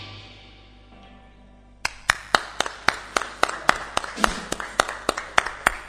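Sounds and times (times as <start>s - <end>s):
applause after a live song in studio 2 of La Correntada: 1.9s - 5.8s.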